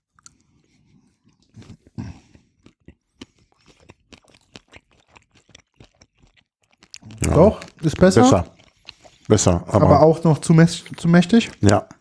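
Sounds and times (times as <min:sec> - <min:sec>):
chewing Berliner Knacker sausage: 0:00.0 - 0:11.9
speech: 0:07.4 - 0:08.5, 0:09.3 - 0:11.9.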